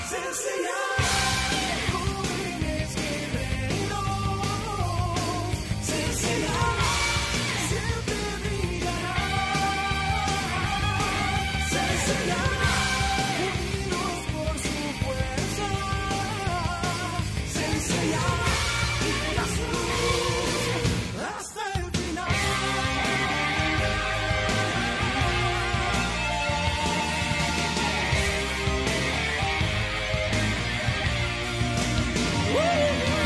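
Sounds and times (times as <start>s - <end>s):
anime opening theme song in Latin Spanish version: 0.0s - 33.2s.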